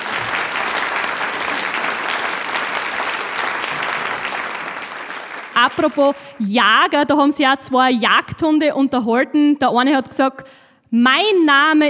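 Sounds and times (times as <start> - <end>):
audience applause: 0.0 - 6.5
speech: 5.6 - 11.8.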